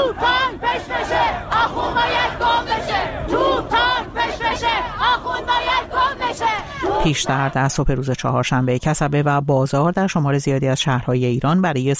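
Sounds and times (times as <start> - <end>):
large protest crowd chanting anti-government slogans: 0.0 - 7.8
speech: 7.0 - 11.9.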